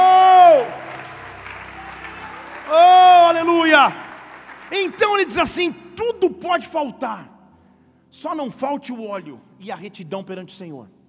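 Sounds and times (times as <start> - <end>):
audience applause: 0.0 - 5.8
speech: 3.8 - 4.0, 4.7 - 7.3, 8.1 - 11.0.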